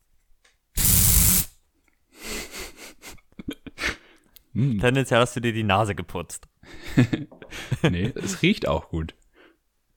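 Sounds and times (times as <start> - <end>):
deodorant spray can hissing: 0.8 - 1.5
speech: 4.6 - 9.2
laughter: 6.8 - 8.4.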